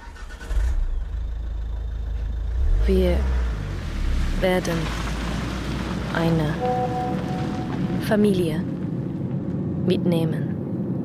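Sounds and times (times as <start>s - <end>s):
car engine with caravan hitched idling: 0.0s - 9.7s
speech: 2.9s - 3.4s, 4.4s - 5.1s, 6.1s - 7.3s, 8.0s - 8.7s, 9.8s - 10.5s.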